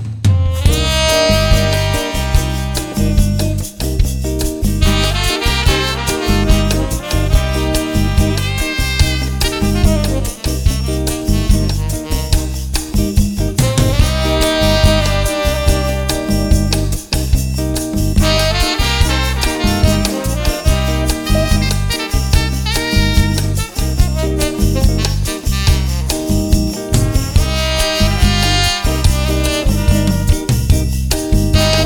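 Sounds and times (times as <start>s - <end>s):
bossa nova interlude: 0.1s - 31.8s.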